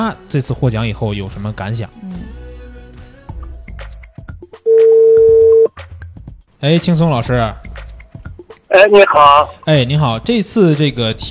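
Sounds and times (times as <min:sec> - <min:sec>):
speech: 0:00.0 - 0:02.4, 0:06.6 - 0:07.6, 0:08.7 - 0:11.2
telephone ringing tone while calling: 0:04.7 - 0:05.7.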